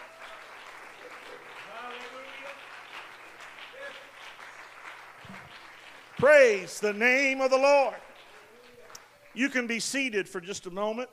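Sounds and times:
audience hand clapping: 0.0s - 9.7s
speech: 6.2s - 8.0s, 9.4s - 11.1s.

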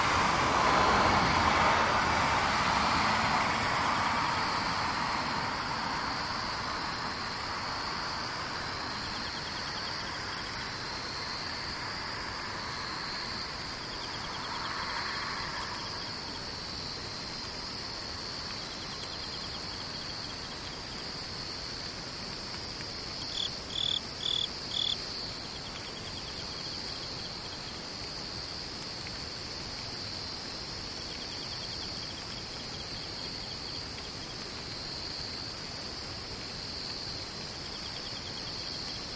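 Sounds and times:
passing vehicle rumble: 0.0s - 17.4s
insects trilling: 2.5s - 29.0s, 30.0s - 39.1s.

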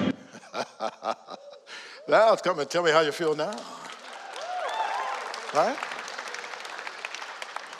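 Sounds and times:
laughter: 0.2s - 2.1s
speech: 2.1s - 3.8s, 5.5s - 6.0s
audience hand clapping: 2.8s - 7.7s.

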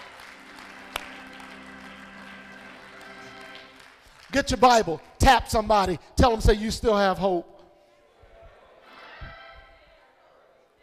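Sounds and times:
audience clapping hands: 0.0s - 5.6s
speech: 4.4s - 7.5s.

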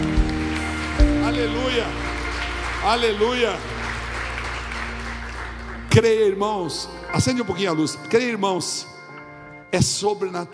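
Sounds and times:
audience applauding loudly: 0.0s - 6.8s
speech: 1.4s - 2.1s, 2.8s - 3.7s, 6.0s - 8.9s, 9.7s - 10.5s.

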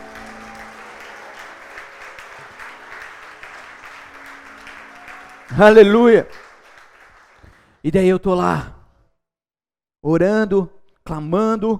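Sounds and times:
audience applauding: 0.0s - 7.8s
speech: 5.6s - 6.5s, 7.8s - 8.8s, 10.0s - 11.7s.

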